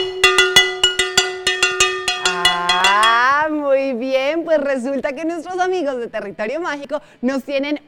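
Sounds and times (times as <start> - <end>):
spatula drumming on a metal pan: 0.0 - 3.4
speech: 4.6 - 7.8.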